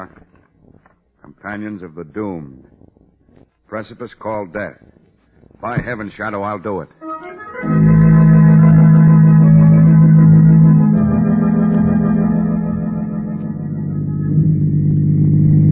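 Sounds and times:
speech: 0.0s - 0.2s, 1.4s - 2.8s, 3.7s - 4.9s, 5.6s - 7.0s
car driving along an empty road in a radio drama: 7.6s - 15.6s.

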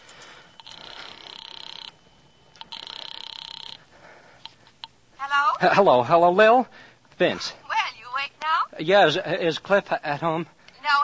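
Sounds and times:
telephone line ringing: 0.0s - 3.9s
faint hiss: 0.0s - 11.0s
speech: 5.6s - 7.6s, 8.8s - 10.6s.

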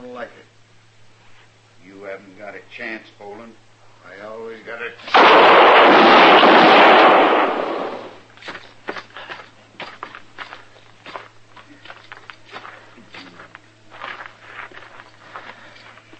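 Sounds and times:
speech: 0.2s - 0.6s, 1.8s - 7.6s
gunshot in a western-drama shootout: 5.1s - 8.2s.

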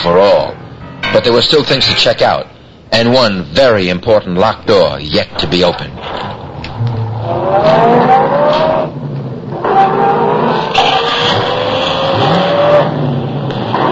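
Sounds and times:
speech: 0.0s - 0.6s, 1.2s - 6.3s, 7.3s - 8.2s
car accelerating hard during a chase: 6.8s - 13.8s.

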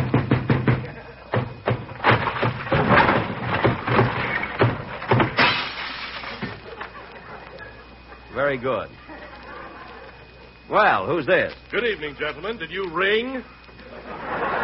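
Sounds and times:
door being broken down: 0.0s - 6.6s
laughter: 0.8s - 1.4s, 6.2s - 10.7s, 13.2s - 14.6s
speech: 8.4s - 9.0s, 10.7s - 13.6s.

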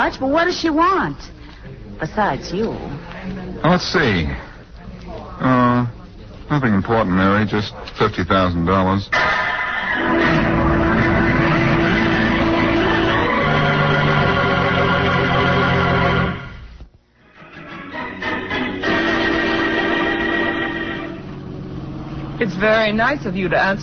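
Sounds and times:
speech: 0.0s - 4.5s, 5.4s - 9.4s, 10.0s - 10.7s, 22.4s - 23.8s
car driving through the country, radio drama sound effect: 9.2s - 16.7s, 18.5s - 23.4s.

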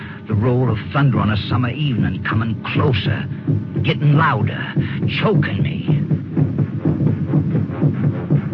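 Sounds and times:
speech: 0.3s - 7.1s
fast pounding heartbeat: 2.4s - 8.5s.

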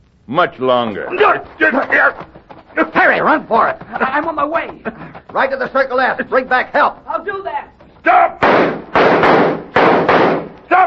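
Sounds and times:
speech: 0.3s - 9.3s
laughter: 2.8s - 7.0s
gunshots in a western shootout: 8.4s - 10.6s.

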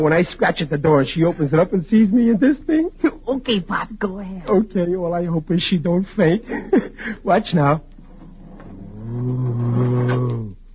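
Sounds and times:
speech: 0.0s - 7.9s
person growling, imitating a bat: 8.7s - 10.6s.

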